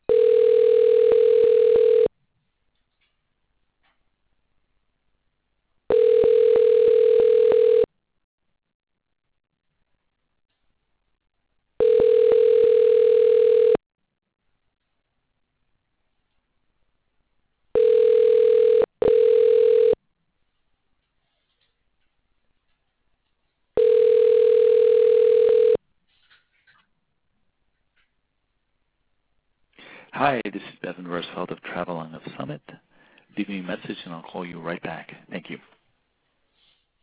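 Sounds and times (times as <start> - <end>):
telephone ringback tone while a call is transferred: 0.1 - 2.1, 5.9 - 7.9, 11.8 - 13.8, 17.8 - 20.0, 23.8 - 25.8.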